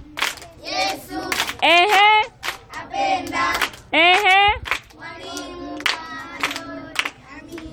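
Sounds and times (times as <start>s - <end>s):
children's voices: 0.0s - 7.7s
scattered clapping for a teacher in church: 0.1s - 7.7s
person calling out: 1.6s - 2.3s, 4.0s - 4.6s.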